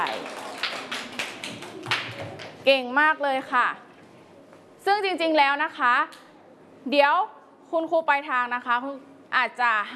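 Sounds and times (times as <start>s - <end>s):
children in a classroom clapping for a classmate: 0.0s - 2.6s
speech: 2.6s - 3.9s, 4.8s - 6.2s, 6.8s - 9.9s.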